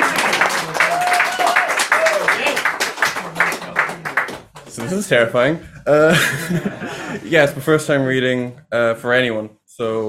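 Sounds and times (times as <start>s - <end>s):
audience applause: 0.0s - 5.2s
speech: 4.9s - 10.0s
laughter: 5.8s - 7.3s.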